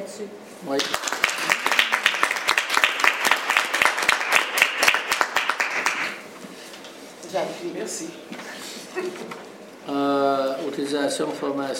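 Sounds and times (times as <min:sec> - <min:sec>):
speech: 0:00.1 - 0:01.2, 0:07.3 - 0:11.7
small group applauding: 0:00.7 - 0:06.3.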